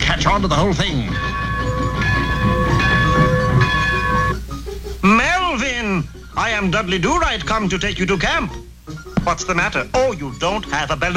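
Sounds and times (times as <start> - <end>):
high sustained metallic squeal: 0.0 - 4.5
train pulling in with a rumble: 0.0 - 5.0
speech: 0.1 - 1.4, 6.4 - 11.1.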